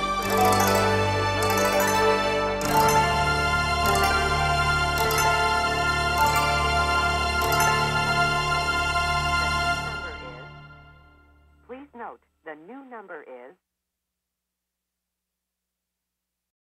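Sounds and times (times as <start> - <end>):
background music ensemble: 0.0 - 12.9.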